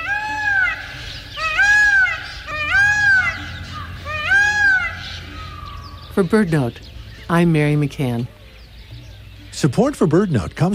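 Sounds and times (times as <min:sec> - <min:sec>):
blue peacock call: 0:00.0 - 0:06.4
speech: 0:06.2 - 0:08.4, 0:09.6 - 0:10.7.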